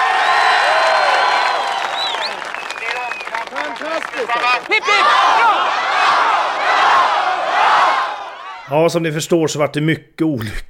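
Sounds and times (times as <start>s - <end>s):
live audience whoops and shouts: 0.0s - 6.0s
live audience applauding: 0.0s - 8.6s
speech: 4.6s - 5.9s, 8.7s - 10.6s.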